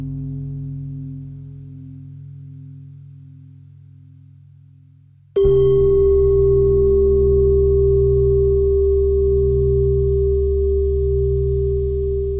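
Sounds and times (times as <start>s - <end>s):
pentatonic bell melody: 5.4s - 12.3s.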